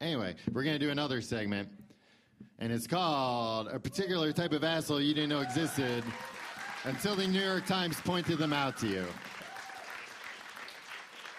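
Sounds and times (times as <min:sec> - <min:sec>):
speech: 0:00.3 - 0:01.8, 0:02.5 - 0:09.3
audience applause: 0:05.1 - 0:11.3.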